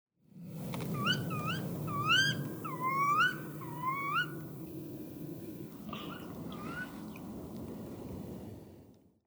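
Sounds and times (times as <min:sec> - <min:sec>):
Garrulus glandarius: 0:00.8 - 0:04.7, 0:05.8 - 0:07.2.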